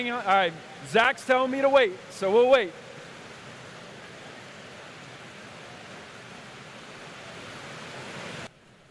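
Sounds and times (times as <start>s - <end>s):
speech: 0.0s - 2.9s
rain falling: 0.0s - 8.8s.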